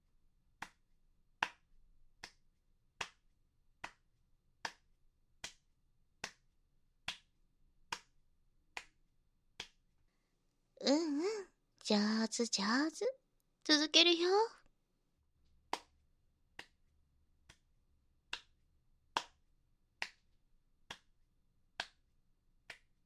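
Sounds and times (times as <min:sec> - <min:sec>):
rhythmic hand clapping: 0:00.6 - 0:09.8, 0:15.7 - 0:16.0, 0:16.6 - 0:16.8, 0:17.4 - 0:17.7, 0:18.3 - 0:23.0
wavering voice: 0:10.8 - 0:14.6
speech: 0:11.9 - 0:14.6.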